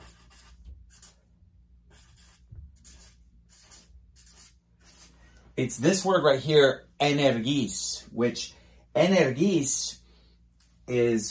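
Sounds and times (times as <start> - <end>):
writing scratching on a board: 0.0 - 1.2, 1.9 - 5.2
speech: 5.6 - 10.0, 10.9 - 11.2.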